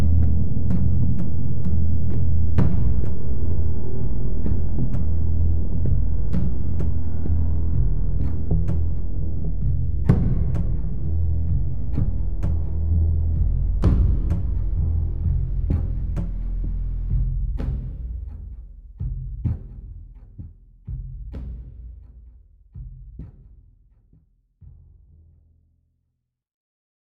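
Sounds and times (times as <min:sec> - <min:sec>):
suspense music loop: 0:00.0 - 0:19.9.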